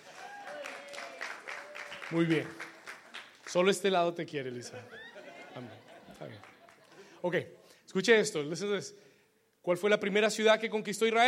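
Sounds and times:
scattered applause: 0.0s - 3.8s, 6.1s - 7.0s
speech: 2.1s - 2.7s, 3.5s - 5.0s, 5.6s - 6.5s, 7.2s - 9.0s, 9.6s - 11.2s
laughter: 4.5s - 7.2s.

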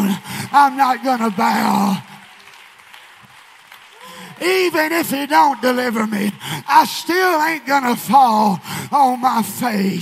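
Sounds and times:
audience clapping hands: 0.0s - 6.6s
speech: 0.5s - 2.1s, 4.4s - 10.0s.

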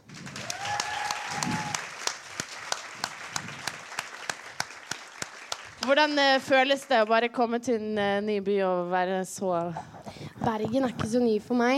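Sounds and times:
audience applause: 0.0s - 7.1s
speech: 5.9s - 11.7s.

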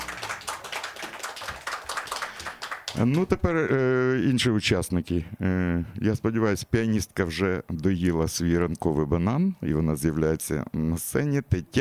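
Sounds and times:
audience applause: 0.0s - 3.3s
speech: 3.0s - 11.8s.

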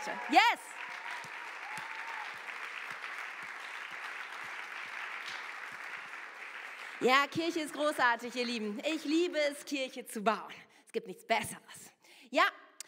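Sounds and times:
speech: 0.0s - 0.8s, 7.0s - 12.6s
audience applause: 0.0s - 8.6s.

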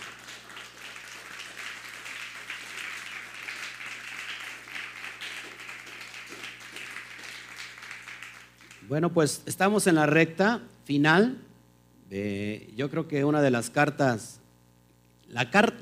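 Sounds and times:
audience applause: 0.0s - 8.9s
speech: 8.9s - 11.5s, 12.1s - 14.4s, 15.3s - 15.8s.

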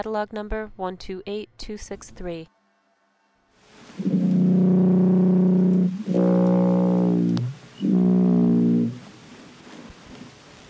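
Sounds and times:
speech: 0.0s - 2.6s
blue whale call off the coast of Chile: 3.7s - 9.3s.

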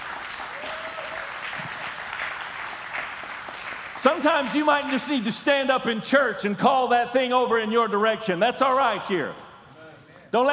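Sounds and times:
audience applause: 0.0s - 5.0s
speech: 4.0s - 9.4s, 10.3s - 10.5s.

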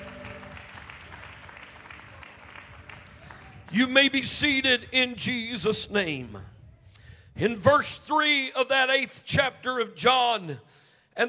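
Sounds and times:
audience clapping: 0.0s - 4.2s
speech: 3.7s - 6.5s, 7.4s - 11.2s.

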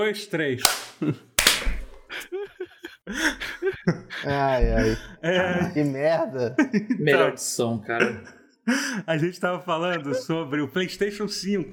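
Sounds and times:
speech: 0.0s - 1.3s, 3.1s - 11.7s
quick group hand claps: 0.6s - 2.0s
laughter: 2.0s - 10.9s.

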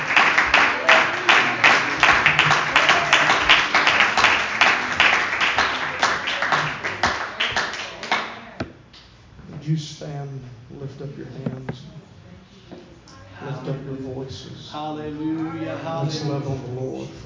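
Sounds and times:
church congregation applauding at a Wednesday evening service: 0.0s - 8.5s
speech: 14.8s - 17.1s.

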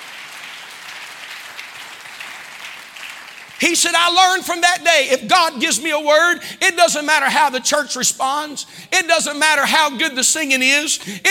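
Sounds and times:
audience clapping: 0.0s - 4.4s
speech: 3.6s - 11.2s.

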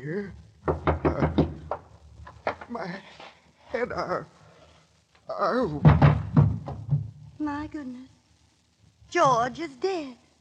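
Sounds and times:
speech: 0.0s - 1.0s, 3.8s - 4.4s, 5.3s - 6.2s, 7.4s - 8.2s, 9.1s - 10.2s
heavy pounding on a door by police: 0.6s - 1.8s, 5.8s - 7.2s.

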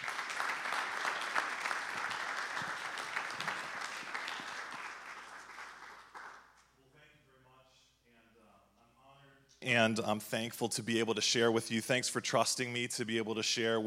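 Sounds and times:
audience applauding to welcome a pastor at a church service: 0.0s - 6.5s
speech: 9.7s - 13.8s.

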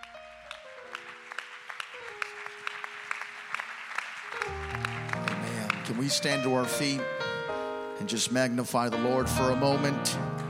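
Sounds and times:
church audience applause: 0.0s - 6.8s
speech: 5.9s - 7.4s, 8.0s - 10.4s.

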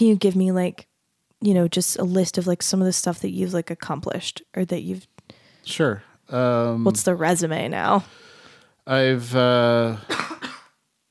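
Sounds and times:
speech: 0.0s - 10.2s
voiced throat sound: 6.4s - 7.0s, 9.0s - 10.6s
person with allergies coughing: 9.8s - 10.8s.

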